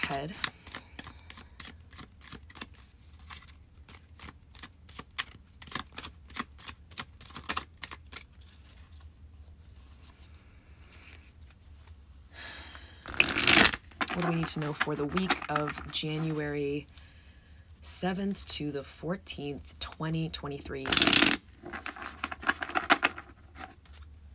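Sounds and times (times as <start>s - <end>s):
tarot cards shuffling: 0.0s - 9.0s, 13.0s - 16.6s, 20.8s - 24.1s
speech: 0.1s - 0.6s, 14.2s - 17.0s, 18.0s - 21.4s.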